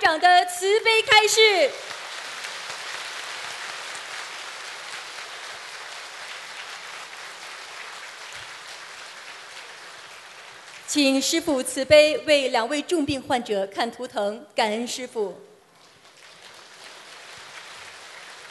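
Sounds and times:
speech: 0:00.1 - 0:01.9, 0:10.9 - 0:15.5
audience applause: 0:01.7 - 0:11.0, 0:15.8 - 0:18.4.

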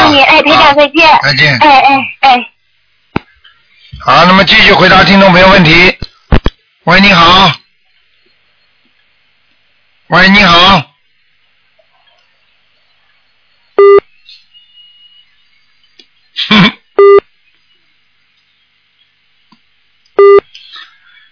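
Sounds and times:
harsh crackle of line noise: 0:00.0 - 0:21.3
speech: 0:00.7 - 0:02.5, 0:04.0 - 0:06.1, 0:06.9 - 0:07.6, 0:10.1 - 0:10.9, 0:16.4 - 0:16.8
telephone busy signal on a faulty line: 0:13.8 - 0:15.3, 0:17.0 - 0:17.2, 0:20.2 - 0:20.5.

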